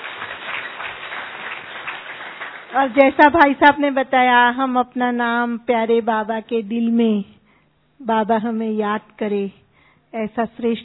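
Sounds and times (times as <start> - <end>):
audience clapping after a talk at a spiritual gathering: 0.0 - 3.4
speech: 2.7 - 7.4, 8.0 - 10.8.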